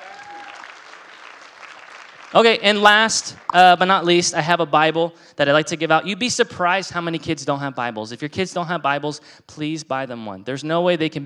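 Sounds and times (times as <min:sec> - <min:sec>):
crowd applauding: 0:00.0 - 0:03.6
speech: 0:02.3 - 0:11.2.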